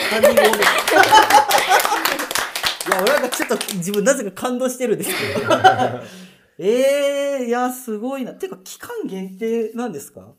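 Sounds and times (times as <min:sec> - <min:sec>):
laughter: 0:00.0 - 0:02.4, 0:05.0 - 0:06.2
speech: 0:00.1 - 0:02.1, 0:02.9 - 0:10.3
hand clapping: 0:00.1 - 0:04.2.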